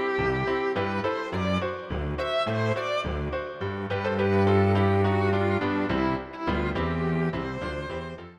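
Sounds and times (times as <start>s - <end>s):
piano trio playing: 0.0s - 8.3s.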